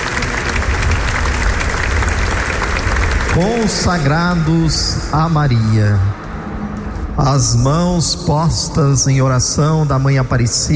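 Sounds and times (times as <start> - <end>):
audience applauding: 0.0 - 4.5
speech: 3.4 - 6.2, 7.2 - 10.7.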